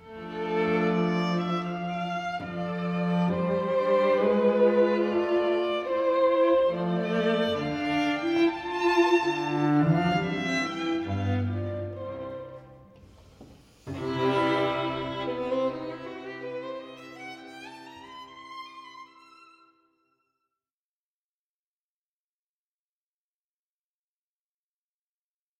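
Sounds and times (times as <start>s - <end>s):
classical trio piece: 0.0s - 19.8s.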